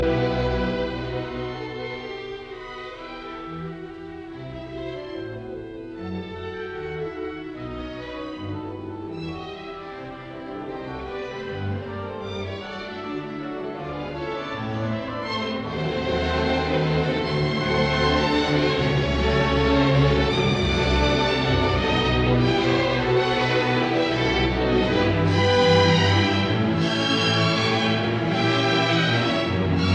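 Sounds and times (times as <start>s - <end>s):
symphony movement in a fast tempo: 0.0s - 29.9s.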